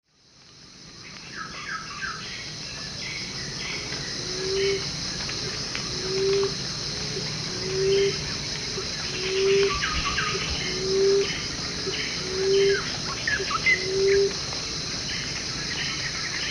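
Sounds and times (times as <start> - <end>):
emerald dove calling with soft low moaning coos: 4.2 - 4.9, 5.9 - 6.6, 7.2 - 14.4.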